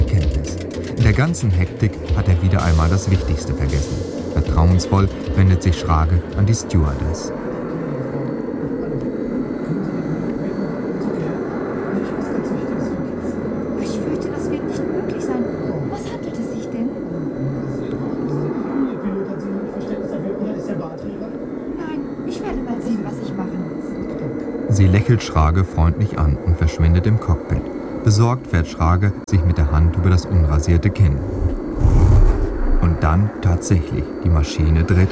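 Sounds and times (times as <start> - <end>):
faint indistinct voices: 0.0 - 26.4
airplane engines roaring during takeoff from the runway: 0.0 - 35.1
speech: 1.2 - 7.5, 25.1 - 31.6, 33.0 - 35.1.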